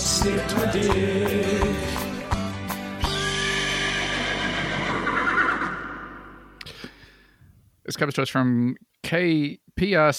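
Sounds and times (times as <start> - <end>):
speech: 0.2 - 1.6, 8.0 - 10.1
horse whinnying: 3.0 - 6.6.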